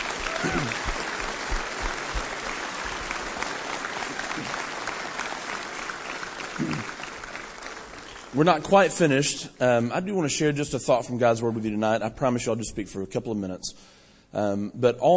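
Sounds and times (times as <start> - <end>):
audience applause for students: 0.0 - 9.2
speech: 8.4 - 15.1.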